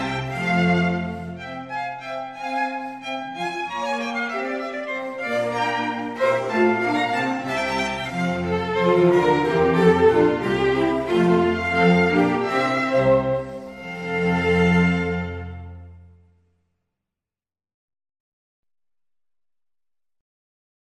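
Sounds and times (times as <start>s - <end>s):
basso continuo in a concerto in F major: 0.0s - 16.2s
four violins playing a concerto: 0.0s - 16.2s
cello in a concerto in F major: 0.0s - 16.3s
string ensemble in a concerto in F major: 0.0s - 16.3s.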